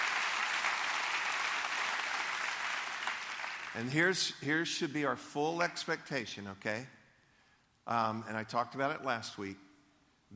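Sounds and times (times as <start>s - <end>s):
audience clapping: 0.0s - 3.9s
speech: 3.7s - 7.0s, 7.9s - 9.6s.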